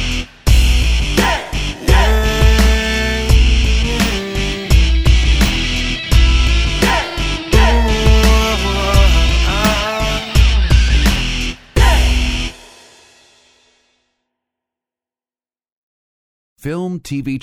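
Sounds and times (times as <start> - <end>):
energetic powerful indie rock music: 0.0 - 12.8.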